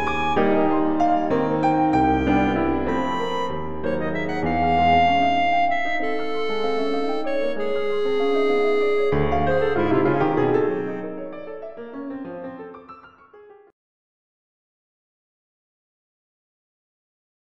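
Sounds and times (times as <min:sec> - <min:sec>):
clarinet: 0:00.0 - 0:13.5
piano: 0:00.0 - 0:13.8.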